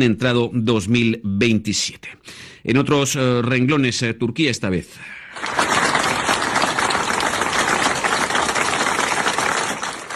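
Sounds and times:
speech: 0.0s - 5.7s
Halk TV staff applauding: 5.3s - 10.1s.

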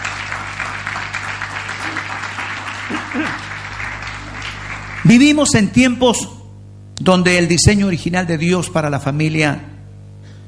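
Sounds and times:
audience applauding: 0.0s - 5.6s
speech: 5.0s - 6.4s, 7.0s - 9.7s.

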